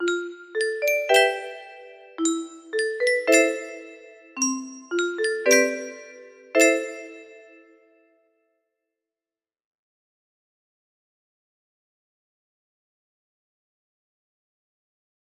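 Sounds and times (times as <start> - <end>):
music box lullaby melody: 0.0 - 7.6.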